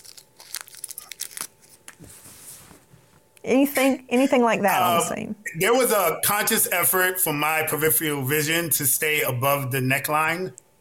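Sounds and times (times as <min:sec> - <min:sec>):
wrapping crinkling and tearing as an object is unwrapped: 0:00.0 - 0:02.1
speech: 0:03.4 - 0:10.6.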